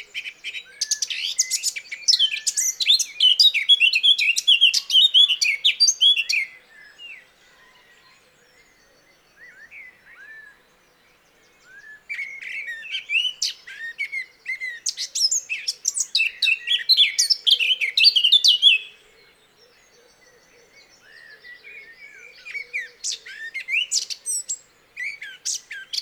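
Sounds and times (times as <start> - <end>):
Eurasian blackcap song: 0.0 - 7.2, 11.6 - 19.0, 21.9 - 26.0.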